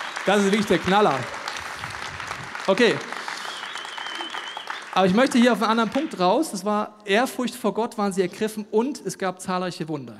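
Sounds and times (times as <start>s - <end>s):
audience cheers and whistles: 0.0s - 1.6s, 3.2s - 5.2s
audience applause: 0.0s - 6.5s
speech: 0.2s - 1.4s, 2.7s - 3.1s, 5.0s - 10.1s.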